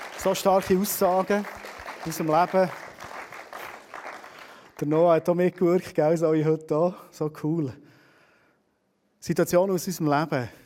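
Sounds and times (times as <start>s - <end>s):
audience applause: 0.0s - 4.9s
speech: 0.2s - 2.8s, 4.8s - 7.8s, 9.2s - 10.6s.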